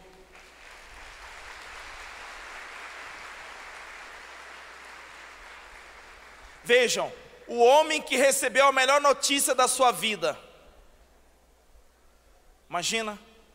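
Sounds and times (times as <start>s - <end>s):
audience applause: 0.0s - 6.6s
speech: 6.6s - 10.4s, 12.7s - 13.3s.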